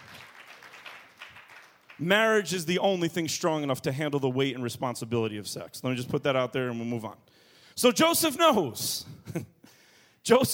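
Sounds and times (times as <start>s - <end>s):
audience clapping: 0.0s - 2.4s
speech: 2.0s - 9.5s, 10.3s - 10.5s.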